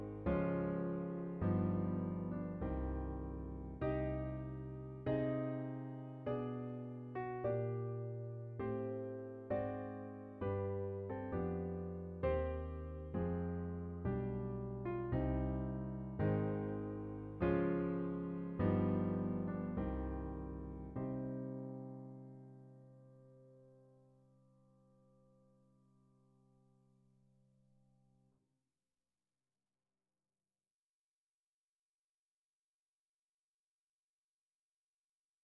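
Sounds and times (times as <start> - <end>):
prelude: 0.0 - 22.4.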